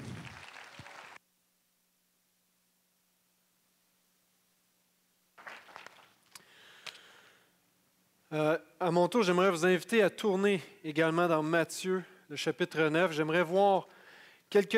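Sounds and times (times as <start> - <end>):
audience applause: 0.0 - 1.2
speech: 8.3 - 14.7.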